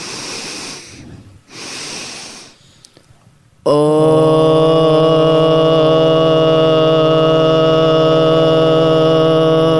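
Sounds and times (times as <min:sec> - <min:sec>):
two sniffs through the nose: 0:00.0 - 0:02.6
person sounding out a low O tone: 0:03.6 - 0:09.7.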